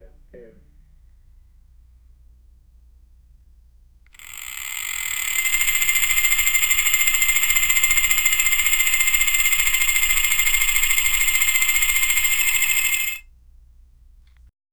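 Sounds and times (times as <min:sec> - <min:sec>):
toy top spinning: 0:04.2 - 0:13.2.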